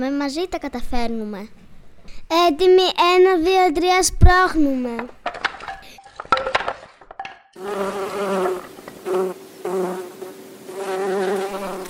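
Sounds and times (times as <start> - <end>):
speech: 0.0 - 5.2
bees buzzing as they fly: 7.6 - 11.8.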